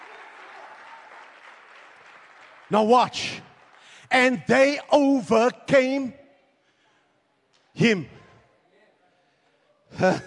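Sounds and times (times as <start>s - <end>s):
audience clapping and shouting: 0.0s - 5.0s
speech: 2.7s - 3.5s, 4.1s - 6.2s, 7.8s - 8.2s, 10.0s - 10.2s
laughter: 9.8s - 10.2s.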